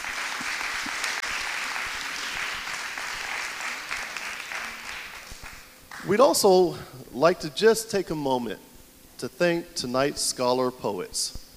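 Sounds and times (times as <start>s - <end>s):
sustained audience applause: 0.0s - 6.2s
speech: 6.1s - 11.4s.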